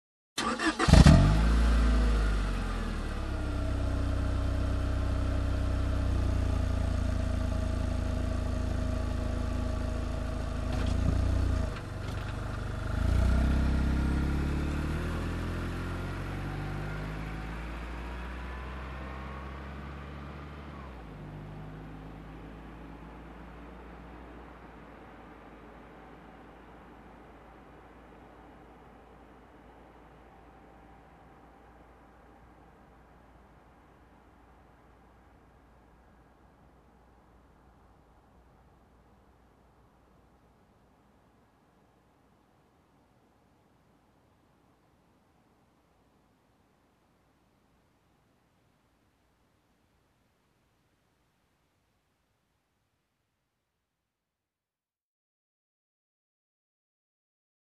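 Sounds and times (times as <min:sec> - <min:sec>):
car engine ignition: 0:00.4 - 0:34.6.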